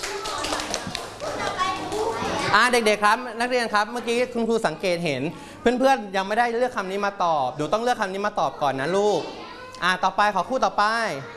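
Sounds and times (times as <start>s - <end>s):
children in a classroom clapping for classmates: 0.0s - 2.4s
young voices in a classroom: 0.0s - 3.0s, 3.9s - 11.3s
speech: 2.5s - 11.3s.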